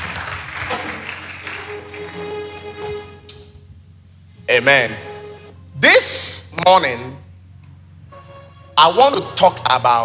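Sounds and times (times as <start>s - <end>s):
audience applause: 0.0s - 2.8s
speech: 4.5s - 5.1s, 5.8s - 7.2s, 8.8s - 10.0s.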